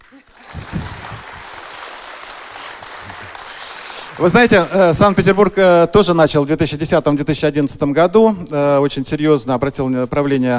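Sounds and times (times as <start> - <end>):
audience applause: 0.0 - 5.5
speech: 4.2 - 10.5.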